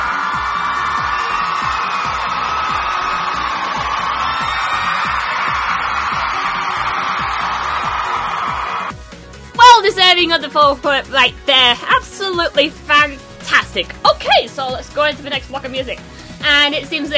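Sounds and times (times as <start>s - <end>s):
audience applause and cheering: 0.0s - 9.2s
speech: 10.2s - 13.2s, 13.8s - 17.1s.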